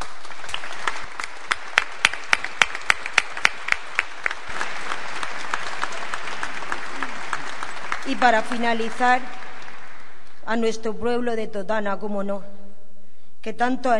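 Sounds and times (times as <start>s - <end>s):
audience applause: 0.0s - 10.3s
speech: 8.2s - 9.4s, 10.5s - 12.5s, 13.4s - 13.9s.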